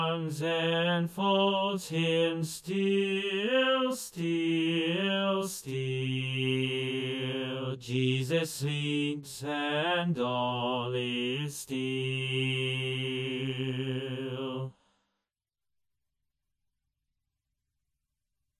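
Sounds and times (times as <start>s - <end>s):
tenor voice singing alone: 0.0s - 14.7s.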